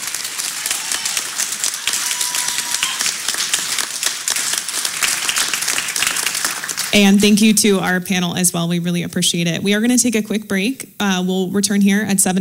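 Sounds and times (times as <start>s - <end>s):
audience applause: 0.0s - 7.3s
speech: 7.0s - 12.3s.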